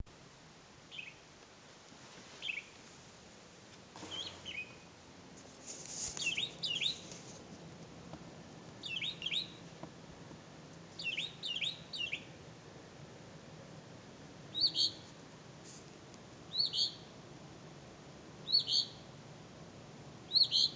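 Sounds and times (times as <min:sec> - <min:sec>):
background hiss: 0:00.0 - 0:20.7
birds chirping and twittering: 0:00.9 - 0:01.3, 0:02.4 - 0:02.8, 0:04.0 - 0:05.0, 0:06.1 - 0:07.2, 0:08.8 - 0:09.6, 0:10.9 - 0:12.4, 0:14.5 - 0:15.1, 0:16.5 - 0:17.1, 0:18.4 - 0:19.0, 0:20.3 - 0:20.7.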